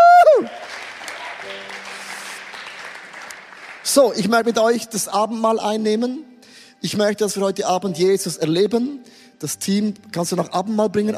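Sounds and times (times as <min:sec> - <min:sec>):
audience applause: 0:00.0 - 0:04.2
speech: 0:03.9 - 0:11.1.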